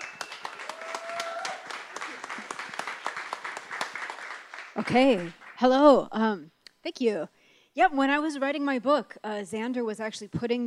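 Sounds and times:
audience applause: 0.0 - 5.6
speech: 4.8 - 10.6.

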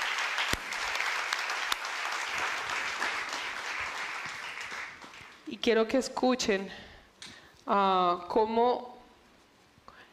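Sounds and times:
audience applause: 0.0 - 5.4
speech: 5.5 - 6.8, 7.7 - 8.9.

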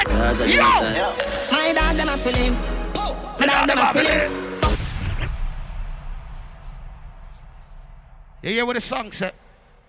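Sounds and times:
speech: 0.2 - 2.8, 3.5 - 4.5, 8.4 - 9.4
gunshot sound effect: 4.6 - 8.4.

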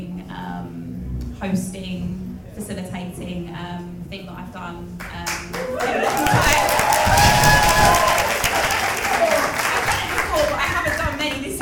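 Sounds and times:
speech: 1.4 - 6.8
audience applause: 5.5 - 11.5.

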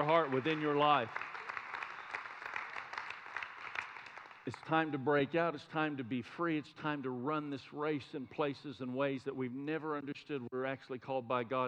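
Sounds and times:
speech: 0.0 - 1.3, 4.5 - 11.6
audience clapping hands: 0.0 - 4.8.

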